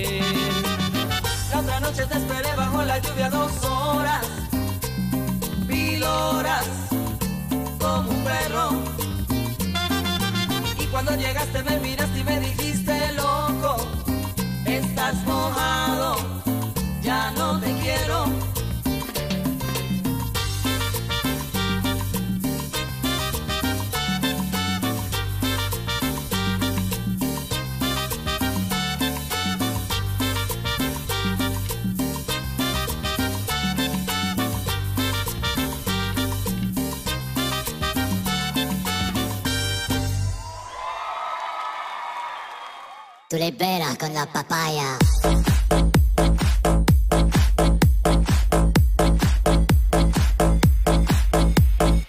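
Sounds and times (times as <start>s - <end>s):
song playing: 0.0s - 40.5s, 44.7s - 52.0s
speech: 43.4s - 45.5s.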